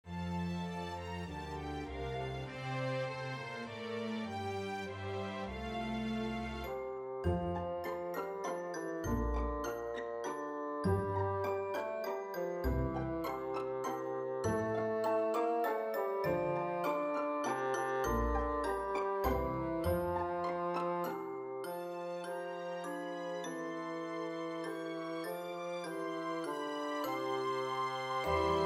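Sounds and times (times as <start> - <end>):
tenoroon melody: 0.2 - 28.6.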